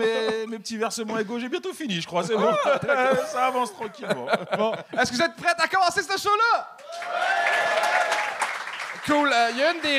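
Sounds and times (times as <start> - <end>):
speech: 0.0 - 7.4, 9.0 - 9.9
laughter: 2.1 - 5.4
raised voices and whoops: 6.8 - 8.4
audience applause: 6.8 - 9.9.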